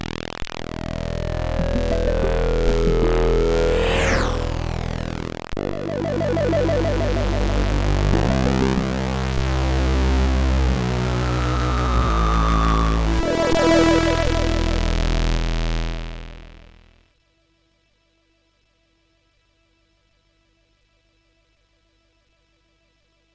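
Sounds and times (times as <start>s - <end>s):
SID MOS6581R3 chip sound: 0.1s - 16.5s.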